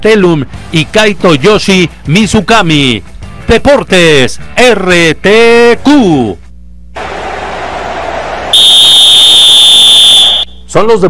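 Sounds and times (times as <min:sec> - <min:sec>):
speech: 0:00.0 - 0:06.4, 0:10.7 - 0:11.0
final whistle of a match: 0:08.4 - 0:10.7.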